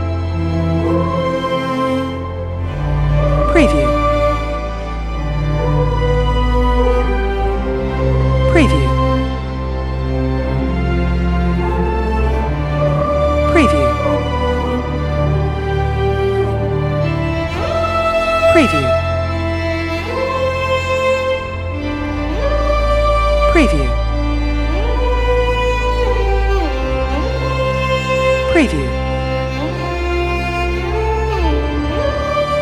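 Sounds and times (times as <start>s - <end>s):
emotional nostalgic dramatic strings film score: 0.0s - 32.5s
sad female voice: 8.6s - 9.0s.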